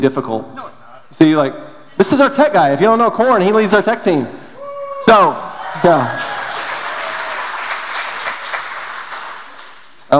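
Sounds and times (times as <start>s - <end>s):
speech: 0.0s - 4.4s, 5.0s - 6.4s
round of applause: 5.6s - 10.0s.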